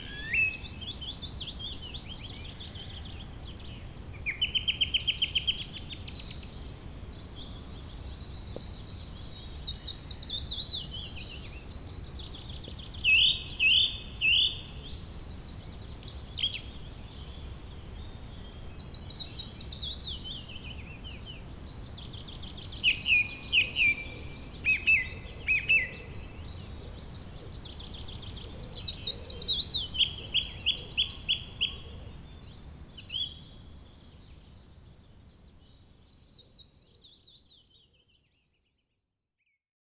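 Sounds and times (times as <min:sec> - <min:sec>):
birdsong in a garden: 0:00.0 - 0:37.9.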